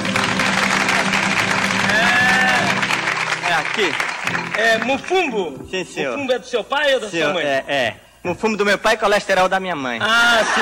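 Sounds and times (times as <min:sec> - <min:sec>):
audience applause: 0:00.0 - 0:05.2
speech: 0:03.8 - 0:10.5
laughter: 0:10.0 - 0:10.5.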